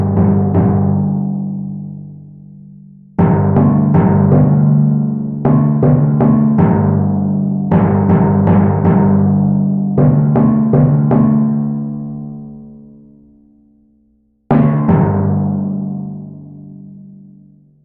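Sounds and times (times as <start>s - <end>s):
carousel timpani: 0.0s - 2.2s, 3.2s - 12.2s, 14.5s - 17.0s.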